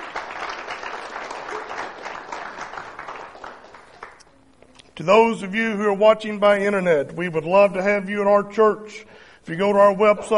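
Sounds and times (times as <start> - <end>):
audience applause in church: 0.0 - 4.2
speech: 5.0 - 10.3.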